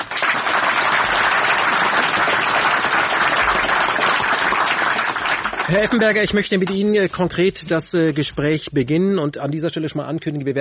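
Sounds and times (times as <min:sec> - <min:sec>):
audience applause: 0:00.0 - 0:06.6
speech: 0:05.7 - 0:10.6.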